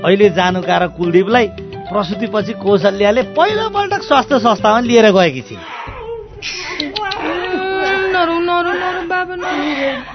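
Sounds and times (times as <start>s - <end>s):
speech: 0.0s - 5.8s, 6.4s - 6.8s
newborn baby crying while being weighed at a health clinic: 5.5s - 10.1s.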